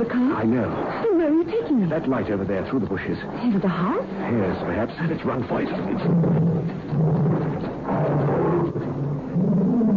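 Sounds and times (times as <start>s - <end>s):
speech: 0.4s - 7.4s
pet tiger roar: 5.6s - 9.9s.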